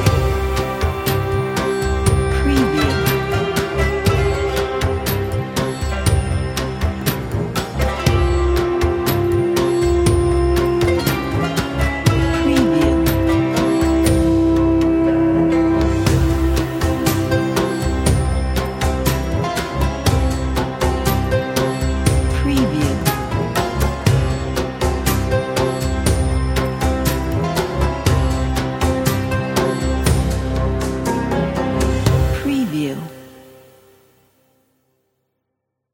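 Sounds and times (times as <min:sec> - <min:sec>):
middle eastern music: 0:00.0 - 0:34.4.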